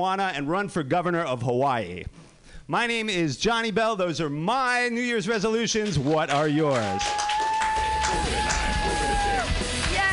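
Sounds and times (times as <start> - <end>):
speech: 0.0 - 7.4
audience clapping and cheering: 5.8 - 10.1
long drawn-out whoop: 6.9 - 9.5.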